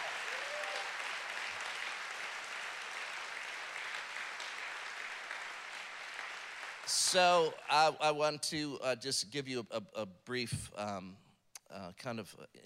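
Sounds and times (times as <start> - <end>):
audience clapping: 0.0 - 8.2
speech: 6.9 - 12.6.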